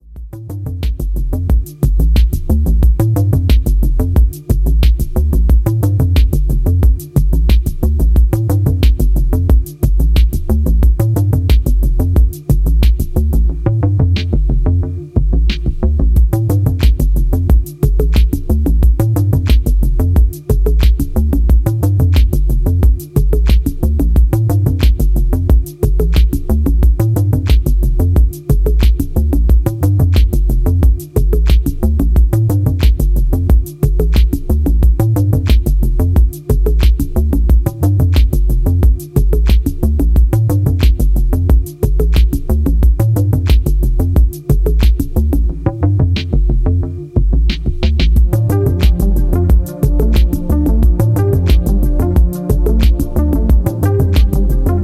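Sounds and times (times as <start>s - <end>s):
electronic rhythm: 0.0s - 54.8s.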